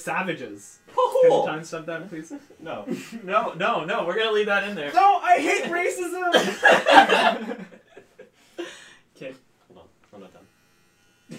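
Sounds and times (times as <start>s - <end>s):
electric shaver buzzing: 0.0s - 6.6s, 9.4s - 11.3s
speech: 0.0s - 7.8s, 9.2s - 9.4s
people chuckling: 6.3s - 8.8s.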